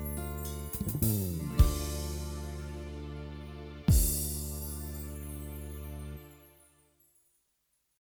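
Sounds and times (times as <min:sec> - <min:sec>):
eight-beat drum pattern: 0:00.0 - 0:02.5, 0:03.9 - 0:04.6.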